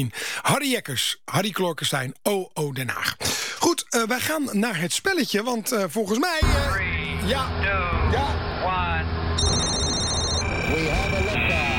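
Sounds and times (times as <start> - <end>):
speech: 0.0 - 8.4
alarm sound effect: 9.4 - 11.7.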